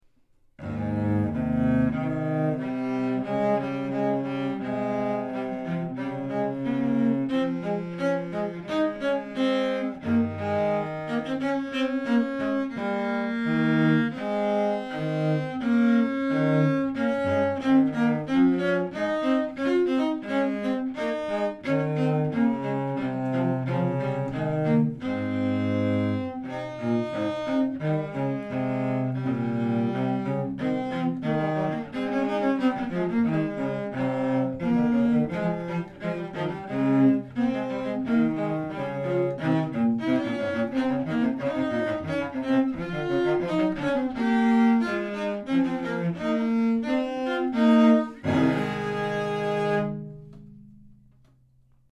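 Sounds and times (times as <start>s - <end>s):
two cellos playing an etude: 0.6s - 51.9s.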